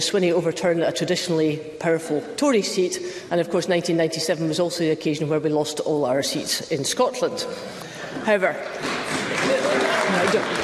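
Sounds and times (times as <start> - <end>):
speech: 0.0 - 10.6
audience applause during a political speech about Scottish elections: 8.6 - 10.6.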